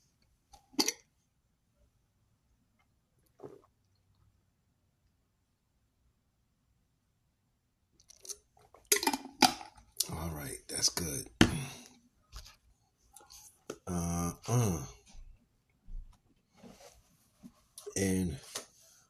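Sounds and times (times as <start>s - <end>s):
person drinking a sip of water: 8.0s - 9.2s
speech: 10.4s - 11.4s, 13.9s - 14.9s, 18.0s - 18.4s.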